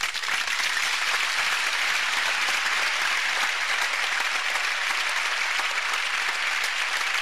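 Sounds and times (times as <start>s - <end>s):
audience applauding a mother after a blessing: 0.0s - 7.2s.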